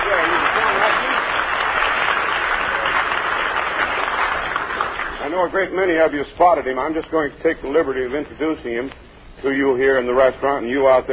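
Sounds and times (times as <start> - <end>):
audience cheer and applause: 0.0 - 5.3
speech: 5.4 - 11.1.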